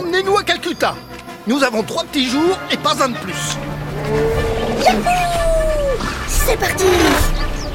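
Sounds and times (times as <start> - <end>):
speech: 0.2 - 5.5, 6.5 - 7.4
elephant trumpeting with brassy wavering blare: 3.6 - 7.6.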